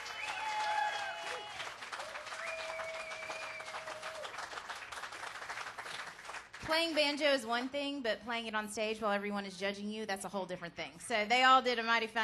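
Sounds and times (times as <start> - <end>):
thin sustained whistles: 0.0 - 4.0
crowd applauding: 0.0 - 6.7
speech: 6.7 - 12.2.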